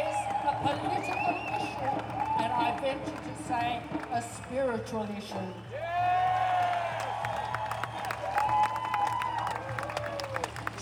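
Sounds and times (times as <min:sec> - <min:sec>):
loud sustained whoops and shouts: 0:00.0 - 0:02.8, 0:05.7 - 0:10.5
large crowd applauding at a rally: 0:00.0 - 0:10.7
speech: 0:02.8 - 0:05.8.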